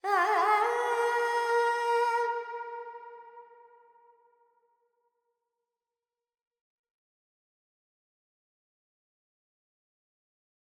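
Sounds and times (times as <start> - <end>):
Carnatic female vocal alaps in Dorian: 0.0 - 3.1.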